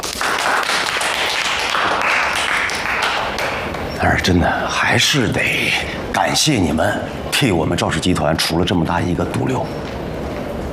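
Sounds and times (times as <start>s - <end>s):
applause: 0.0s - 3.8s
speech: 4.2s - 10.0s.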